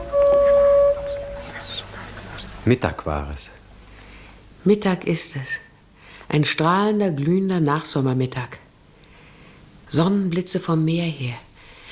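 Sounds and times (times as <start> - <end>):
distant vehicle horn: 0.0 - 1.8
speech: 2.6 - 3.6, 4.6 - 5.7, 6.3 - 8.6, 9.9 - 11.5.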